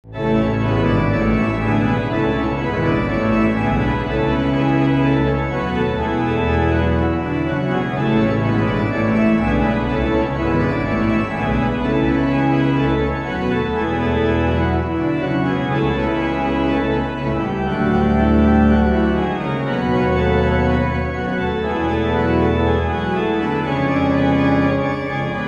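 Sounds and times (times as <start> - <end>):
organ: 0.0 - 25.4.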